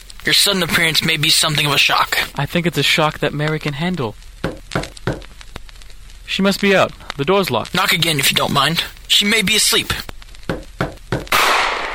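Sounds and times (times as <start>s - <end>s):
speech: 0.2s - 4.2s, 6.4s - 10.1s
revolver gunshot: 11.3s - 11.9s.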